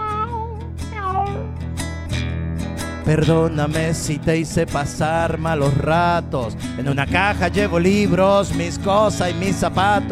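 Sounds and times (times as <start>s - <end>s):
human voice imitating a cat meowing: 0.0s - 1.6s
speech: 3.1s - 10.1s.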